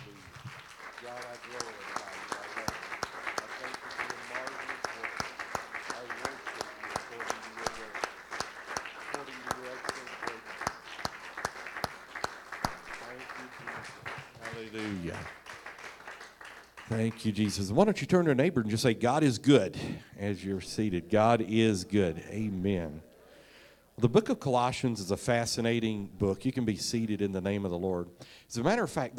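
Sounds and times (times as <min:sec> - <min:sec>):
audience clapping: 0:00.0 - 0:18.0
speech: 0:01.0 - 0:02.7, 0:14.7 - 0:15.4, 0:16.9 - 0:23.1, 0:24.0 - 0:29.1.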